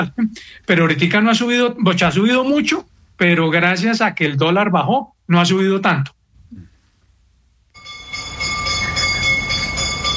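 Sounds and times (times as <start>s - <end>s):
speech: 0.0s - 6.7s
bell ringing: 7.8s - 10.1s.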